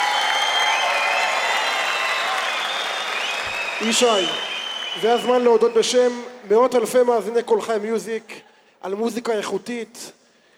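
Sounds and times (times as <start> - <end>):
audience applause: 0.0 - 5.6
scattered cheering with whistly tones: 0.0 - 5.7
speech: 3.8 - 10.2.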